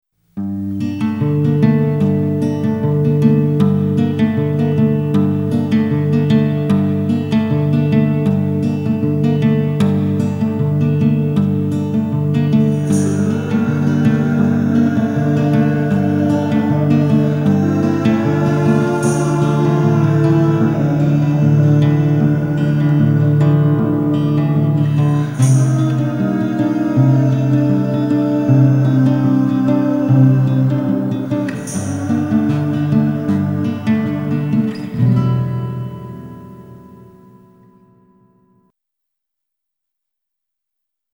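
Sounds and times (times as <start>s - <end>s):
instrumental music: 0.4s - 38.6s.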